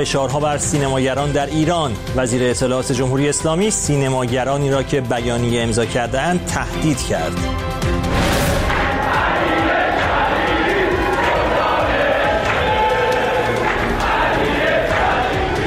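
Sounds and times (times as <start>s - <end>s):
speech: 0.0s - 8.4s
stadium crowd cheering: 8.1s - 15.6s.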